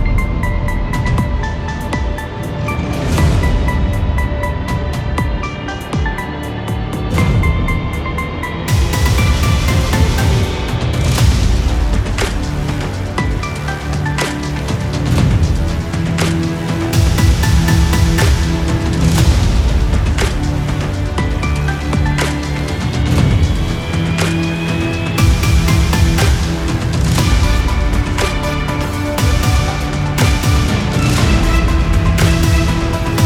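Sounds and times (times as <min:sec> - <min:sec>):
trailer-style arrangement of a Christmas song: 0:00.0 - 0:33.2.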